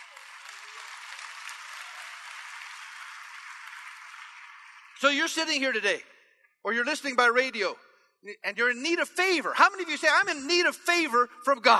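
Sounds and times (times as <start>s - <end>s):
audience applause: 0.0s - 5.8s
speech: 5.0s - 11.7s.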